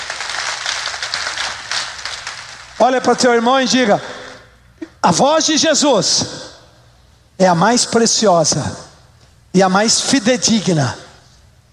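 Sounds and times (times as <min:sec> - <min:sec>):
congregation applause during a church sermon: 0:00.0 - 0:04.4
speech: 0:02.8 - 0:04.2, 0:05.0 - 0:06.5, 0:07.4 - 0:08.9, 0:09.5 - 0:11.0.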